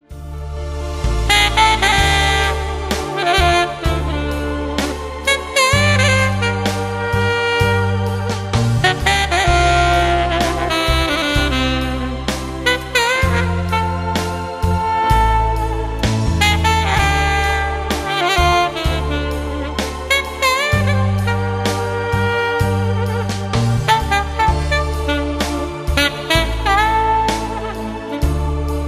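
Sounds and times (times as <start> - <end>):
saxophone: 0.0 - 28.8.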